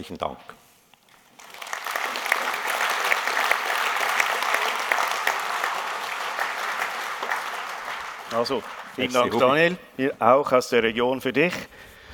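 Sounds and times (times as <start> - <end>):
speech: 0.0 - 0.6, 8.3 - 11.8
applause after a speech: 1.1 - 9.6.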